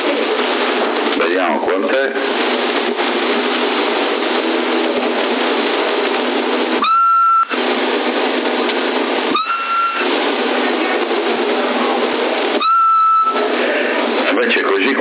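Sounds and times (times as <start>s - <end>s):
CB radio static hiss: 0.0s - 14.9s
speech: 1.8s - 2.5s
person whistling into a CB radio transmitter: 6.8s - 7.5s, 9.4s - 10.0s, 12.6s - 13.4s
faint held tone: 6.8s - 7.6s, 9.3s - 10.1s, 12.6s - 13.5s.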